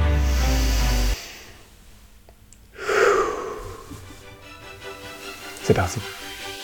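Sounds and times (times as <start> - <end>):
deep breath in: 0.2 - 1.7, 2.7 - 4.2
speech: 5.7 - 6.2.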